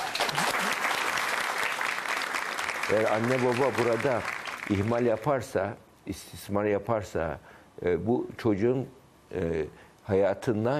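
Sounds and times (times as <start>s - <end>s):
audience applause: 0.0s - 5.0s
speech: 2.9s - 10.7s.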